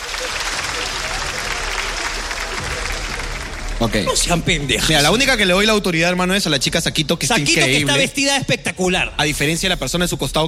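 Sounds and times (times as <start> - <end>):
audience applause: 0.0 - 5.8
speech: 3.8 - 10.4.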